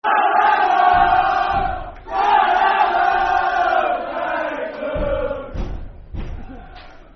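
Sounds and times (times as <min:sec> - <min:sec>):
football crowd chanting: 0:00.0 - 0:07.1.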